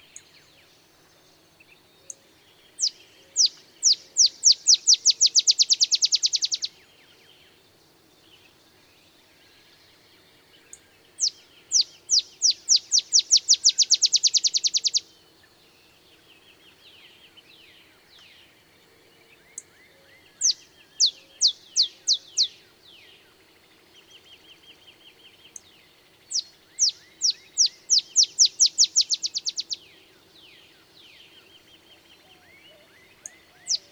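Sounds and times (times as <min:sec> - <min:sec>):
Olive Sparrow calling: 0:02.8 - 0:06.8, 0:10.7 - 0:15.1, 0:20.3 - 0:22.6, 0:25.4 - 0:33.9.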